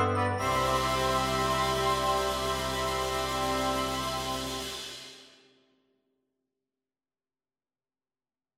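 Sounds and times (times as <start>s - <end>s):
lyre glockenspiel: 0.0s - 5.3s
wind band of flute, oboe, clarinet, alto saxophone, horn, euphoniums, tuba: 0.0s - 5.4s
suspended cymbal: 0.4s - 5.6s.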